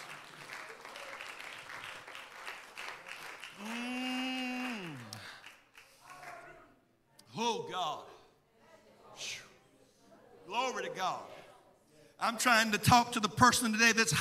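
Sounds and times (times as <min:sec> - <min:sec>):
audience clapping: 0:00.0 - 0:06.5
person crying out a long sustained note: 0:03.6 - 0:05.1
speech: 0:07.4 - 0:08.1, 0:10.8 - 0:11.4, 0:12.2 - 0:14.1.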